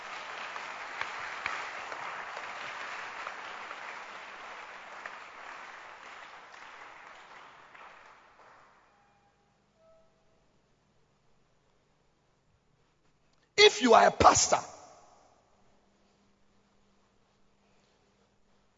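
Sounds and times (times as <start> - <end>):
church congregation clapping during a service: 0.0 - 9.0
speech: 13.7 - 14.7.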